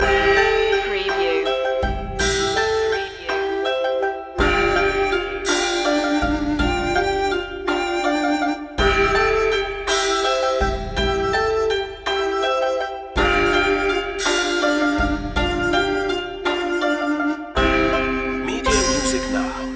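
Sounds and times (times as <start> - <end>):
Chinese waltz music loop: 0.0 - 19.7.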